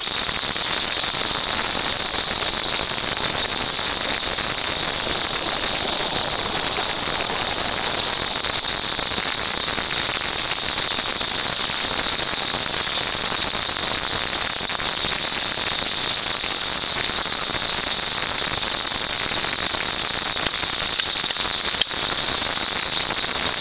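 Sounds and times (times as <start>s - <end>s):
cicadas: 0.0s - 23.5s.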